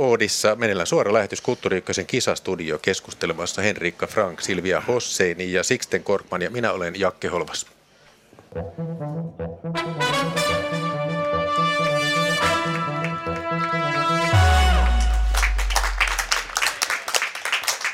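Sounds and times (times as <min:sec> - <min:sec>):
speech: 0:00.0 - 0:07.8, 0:08.5 - 0:10.0
bright sustained musical passage: 0:08.5 - 0:16.8
clapping from a group of school students: 0:14.7 - 0:17.9.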